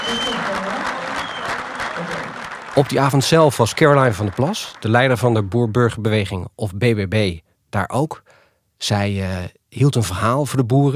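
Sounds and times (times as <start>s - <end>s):
audience clapping along: 0.0s - 5.8s
speech: 0.1s - 0.7s, 2.8s - 10.9s.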